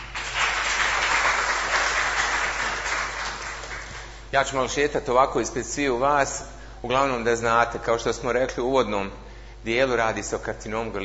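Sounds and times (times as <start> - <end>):
audience applause at a health education talk: 0.0 - 4.1
speech: 4.3 - 11.0.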